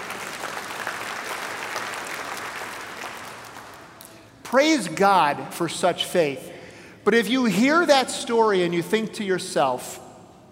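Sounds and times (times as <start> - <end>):
audience applause: 0.0 - 4.0
speech: 4.5 - 10.0.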